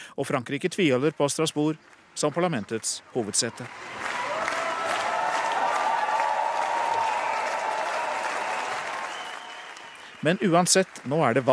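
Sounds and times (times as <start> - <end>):
speech: 0.2 - 4.2, 10.2 - 11.5
crowd applauding nominees: 1.9 - 11.5
faint whistles or cheers: 3.4 - 10.5.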